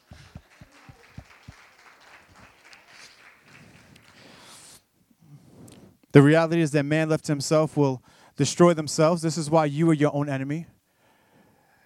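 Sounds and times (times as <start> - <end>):
audience clapping: 0.0 - 4.8
speech: 6.2 - 10.8.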